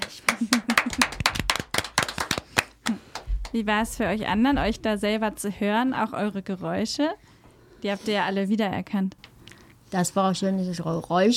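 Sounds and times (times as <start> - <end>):
applause: 0.0 - 3.6
speech: 3.6 - 9.2, 9.9 - 11.3.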